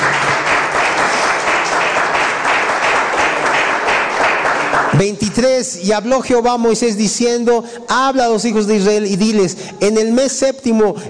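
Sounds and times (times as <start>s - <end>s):
audience applause: 0.0s - 5.1s
speech: 5.0s - 11.0s.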